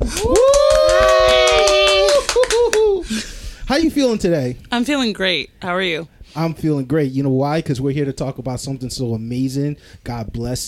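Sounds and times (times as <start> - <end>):
crowd applause: 0.0 - 3.0
speech: 3.8 - 10.6.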